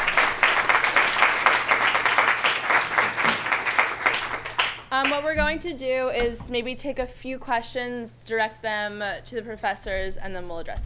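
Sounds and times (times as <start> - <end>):
crowd applause: 0.0 - 4.9
speech: 5.2 - 10.8.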